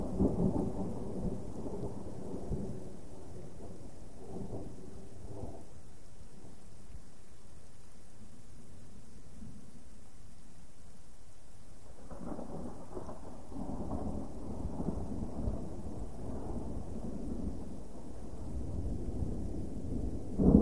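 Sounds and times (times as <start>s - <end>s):
continuous distant thunder: 0.0s - 5.7s, 11.9s - 20.5s.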